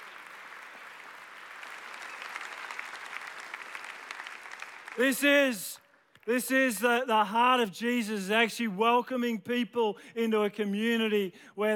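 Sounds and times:
audience clapping at a church service: 0:00.0 - 0:07.0
speech: 0:05.0 - 0:11.7.

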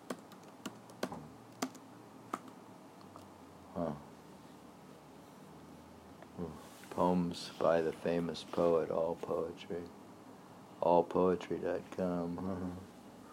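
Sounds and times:
typing on a computer keyboard: 0:00.0 - 0:02.6
speech: 0:03.8 - 0:04.1, 0:06.4 - 0:10.0, 0:10.8 - 0:12.9.

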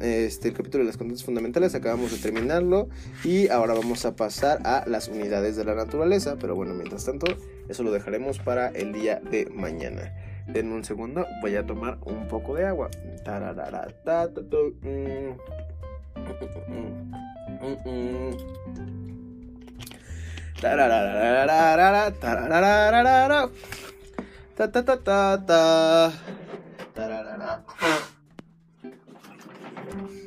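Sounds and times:
speech: 0:00.0 - 0:19.1, 0:20.6 - 0:23.9, 0:24.6 - 0:26.4
loud nose blowing: 0:27.7 - 0:28.2.

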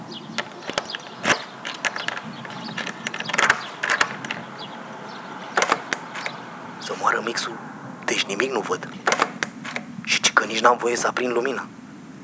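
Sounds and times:
key turning in a door lock: 0:00.4 - 0:06.4, 0:09.0 - 0:09.9
speech: 0:07.1 - 0:07.7, 0:08.3 - 0:09.1, 0:10.5 - 0:11.8.

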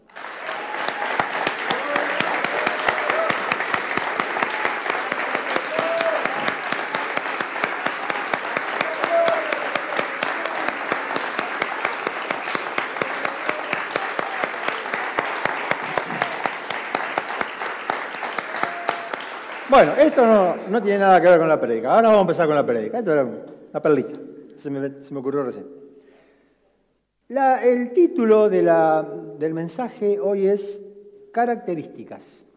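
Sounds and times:
audience clapping: 0:00.0 - 0:21.5
speech: 0:19.8 - 0:25.8, 0:27.4 - 0:30.8, 0:31.4 - 0:32.5.

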